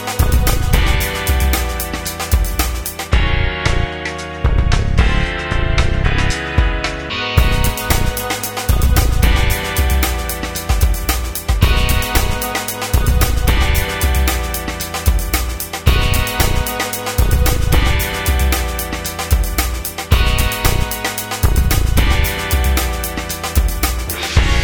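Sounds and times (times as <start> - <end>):
background drums: 0.0 - 24.6.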